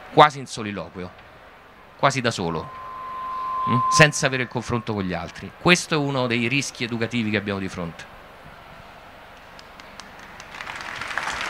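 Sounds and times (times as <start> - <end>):
speech: 0.1 - 1.3, 2.0 - 2.8, 3.6 - 8.1
applause: 9.4 - 11.4.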